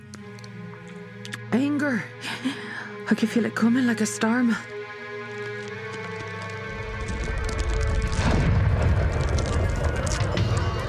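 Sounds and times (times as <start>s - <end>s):
speech: 1.5s - 4.8s
grinding and thudding debris: 5.3s - 10.8s
ship crashing into a dock with heavy crunching impact: 6.4s - 10.8s
deep rumbling roar of a ship crashing into a dock: 7.0s - 10.8s.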